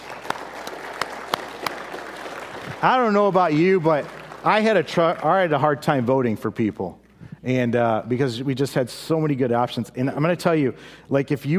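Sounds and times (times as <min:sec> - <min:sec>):
crowd applauding: 0:00.0 - 0:05.8
speech: 0:02.8 - 0:11.5.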